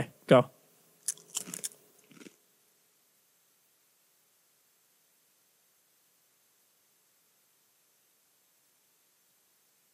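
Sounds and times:
chewing chip: 0:01.0 - 0:02.4
crunching bites of a buttery-tasting chip: 0:01.0 - 0:02.4.

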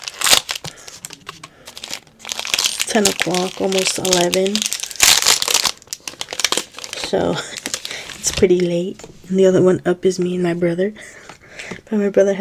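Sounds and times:
unwrapping a Reese's peanut butter football candy wrapper: 0:00.0 - 0:08.7
speech: 0:02.9 - 0:04.7, 0:07.1 - 0:07.6, 0:08.2 - 0:11.2, 0:11.8 - 0:12.3.

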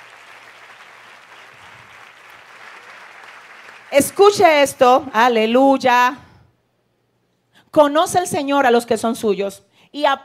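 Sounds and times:
audience applause: 0:00.0 - 0:04.0
speech: 0:03.9 - 0:06.2, 0:07.7 - 0:10.2.

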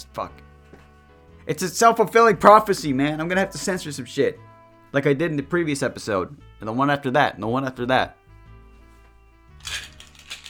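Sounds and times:
speech: 0:00.0 - 0:00.5, 0:01.5 - 0:08.2
polyhedral dice rattling: 0:09.6 - 0:10.4.

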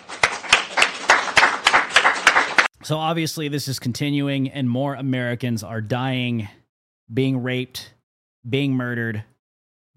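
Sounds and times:
slow rhythmic clapping: 0:00.0 - 0:02.7
speech: 0:02.9 - 0:09.3.

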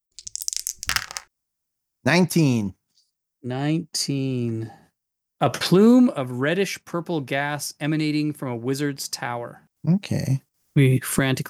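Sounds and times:
percentile dice rattling and tumbling across a hard surface: 0:00.1 - 0:01.3
speech: 0:02.0 - 0:02.8, 0:03.4 - 0:04.8, 0:05.4 - 0:11.4.

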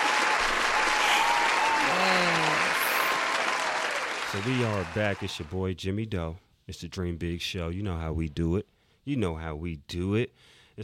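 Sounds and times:
audience applause: 0:00.0 - 0:05.5
speech: 0:04.4 - 0:10.8.

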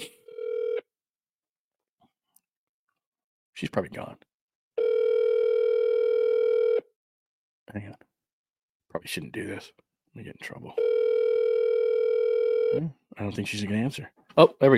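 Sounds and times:
phone call dialing tone on speakerphone: 0:00.2 - 0:00.9, 0:04.8 - 0:06.9, 0:10.8 - 0:12.8
speech: 0:03.6 - 0:04.3, 0:07.7 - 0:08.1, 0:08.9 - 0:10.9, 0:12.7 - 0:14.7.

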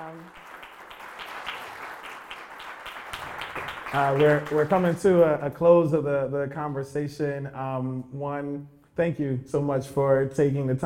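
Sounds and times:
audience applause: 0:00.0 - 0:05.0
speech: 0:03.6 - 0:10.8.

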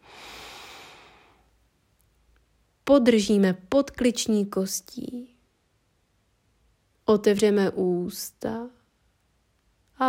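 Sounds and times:
deep inhale through the nose during a yoga lesson: 0:00.0 - 0:01.5
speech: 0:02.9 - 0:05.4, 0:07.1 - 0:08.8.

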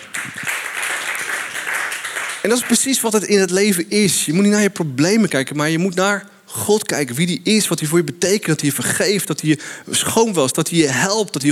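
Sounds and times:
audience applause: 0:00.0 - 0:03.0
speech: 0:02.4 - 0:11.5.

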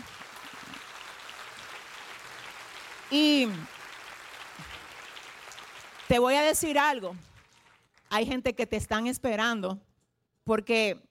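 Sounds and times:
audience applause: 0:00.0 - 0:07.9
speech: 0:03.1 - 0:03.7, 0:06.1 - 0:07.3, 0:08.1 - 0:11.1.

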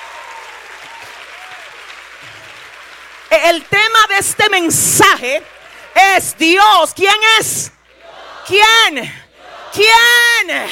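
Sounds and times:
audience applauding: 0:00.0 - 0:06.0
speech: 0:03.4 - 0:07.8, 0:08.4 - 0:10.7.

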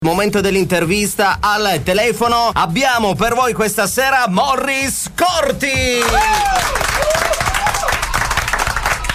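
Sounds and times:
speech: 0:00.0 - 0:07.1
applause: 0:05.8 - 0:09.1.

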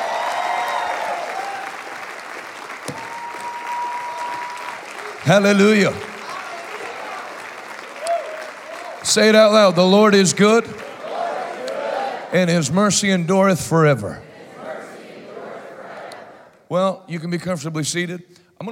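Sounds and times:
audience clapping: 0:00.0 - 0:12.3
speech: 0:05.2 - 0:06.1, 0:09.2 - 0:10.8, 0:12.3 - 0:14.3, 0:16.7 - 0:18.7.

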